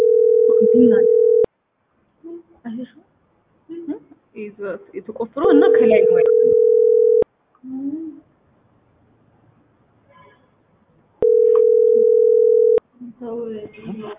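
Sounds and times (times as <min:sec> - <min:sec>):
ringback tone of an outgoing phone call: 0:00.0 - 0:01.5, 0:05.7 - 0:07.2, 0:11.2 - 0:12.8
speech: 0:00.8 - 0:01.2, 0:02.8 - 0:03.1, 0:04.4 - 0:06.8, 0:13.2 - 0:14.1.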